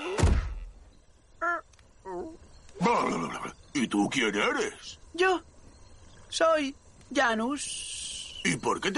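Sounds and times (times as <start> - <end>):
body falling backwards onto ground: 0.2 - 0.7
speech: 3.9 - 5.5, 6.3 - 8.9.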